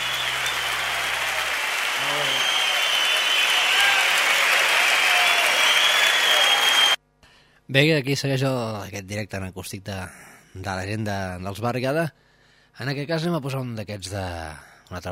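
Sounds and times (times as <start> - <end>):
audience applauding at live acoustic concert: 0.0 - 7.0
speech: 7.7 - 12.2, 12.8 - 15.0.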